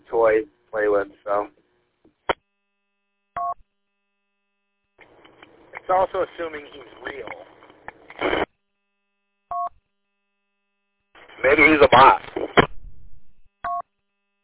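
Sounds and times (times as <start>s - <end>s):
speech: 0.2s - 1.5s, 5.9s - 7.5s, 11.4s - 12.4s
touch-tone phone keypad beeps: 13.6s - 13.8s.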